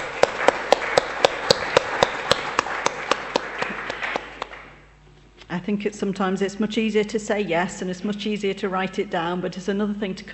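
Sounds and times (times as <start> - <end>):
round of applause: 0.0 - 4.8
speech: 5.6 - 10.3.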